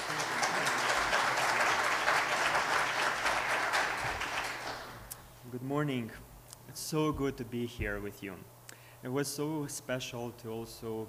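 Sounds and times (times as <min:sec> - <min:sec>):
church audience applause welcoming guest speakers: 0:00.0 - 0:05.1
speech: 0:05.6 - 0:11.0.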